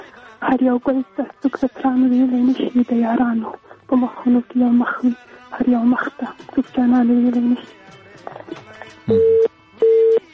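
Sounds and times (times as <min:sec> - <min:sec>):
speech: 0:00.4 - 0:09.5
telephone busy tone after a dropped call: 0:09.1 - 0:10.2.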